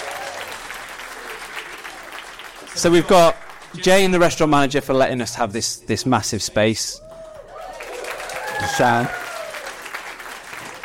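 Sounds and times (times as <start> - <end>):
applause honouring IKEA and its staff: 0.0 - 4.3, 7.0 - 10.8
speech: 2.8 - 7.0, 8.8 - 9.2.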